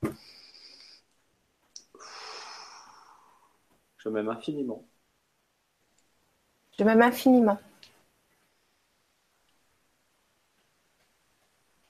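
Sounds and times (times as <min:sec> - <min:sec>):
deep breath: 0:00.1 - 0:01.1, 0:01.9 - 0:03.8
speech: 0:04.0 - 0:04.9, 0:06.8 - 0:07.7.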